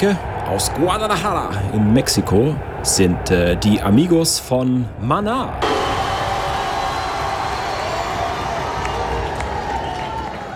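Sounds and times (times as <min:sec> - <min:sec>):
speech: 0:00.0 - 0:06.0
large crowd clapping and cheering: 0:05.6 - 0:10.5.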